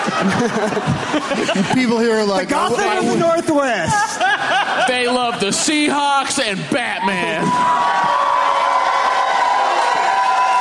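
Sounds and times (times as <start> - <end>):
laughter: 0.0 - 7.5
speech: 0.1 - 8.4
audience booing: 6.8 - 10.5.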